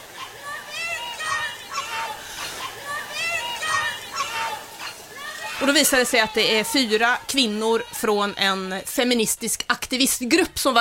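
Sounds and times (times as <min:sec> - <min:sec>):
crowd murmur: 0:00.0 - 0:08.4
people shouting: 0:00.0 - 0:08.9
speech: 0:05.6 - 0:10.7.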